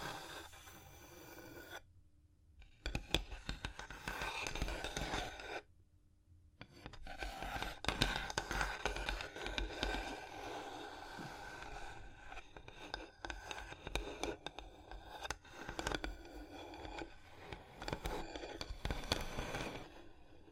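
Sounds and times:
tapping, scratching and tracing on a surface: 0:02.8 - 0:05.6, 0:06.7 - 0:19.9.

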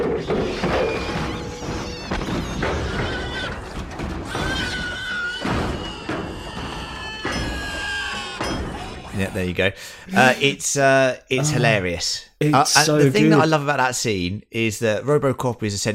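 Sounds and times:
ED-209 robot from RoboCop tumbling down stairs: 0:00.0 - 0:09.1
speech: 0:09.2 - 0:15.9.

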